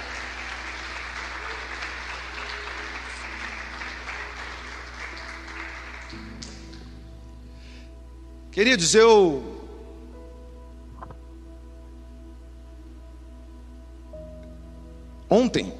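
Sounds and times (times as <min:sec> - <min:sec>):
audience applauding loudly: 0:00.0 - 0:06.9
speech: 0:08.6 - 0:09.5.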